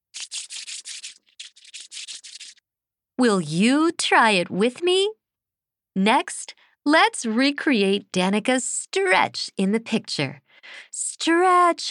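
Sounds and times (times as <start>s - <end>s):
hands rubbing together fast: 0.1s - 2.6s
speech: 3.2s - 5.2s, 6.0s - 11.8s.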